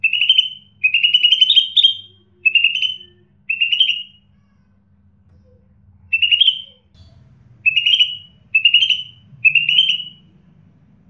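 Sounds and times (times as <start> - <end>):
bird chirping short bright buzzy upslurred notes: 0.0 - 4.3, 6.1 - 10.4.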